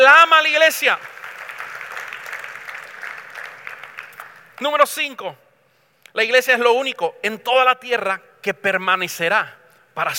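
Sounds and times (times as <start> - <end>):
speech: 0.2 - 1.2, 4.6 - 5.4, 6.1 - 10.1
audience applause: 0.9 - 4.6.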